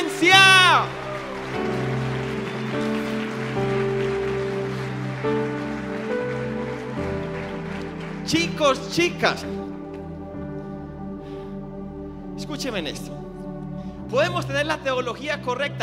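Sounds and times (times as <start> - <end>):
audience applauding: 0.0 - 10.1
speech: 0.2 - 1.7, 8.3 - 9.6, 12.6 - 13.2, 14.1 - 15.8.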